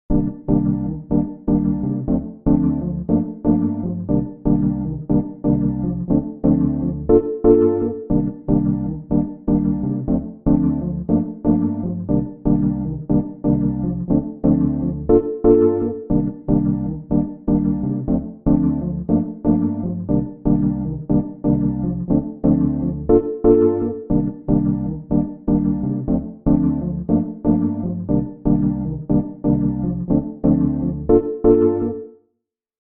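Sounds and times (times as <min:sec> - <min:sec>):
Wurlitzer electric piano: 0:00.1 - 0:32.1.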